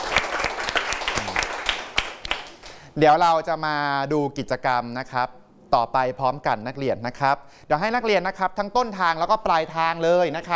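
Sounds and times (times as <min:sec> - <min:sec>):
students in a classroom clapping for a classmate: 0:00.0 - 0:02.8
speech: 0:03.0 - 0:10.5.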